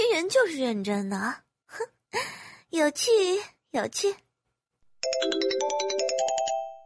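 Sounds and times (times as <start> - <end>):
speech: 0.2 - 4.2, 5.0 - 6.1
phone ringtone of an incoming call: 5.0 - 6.8.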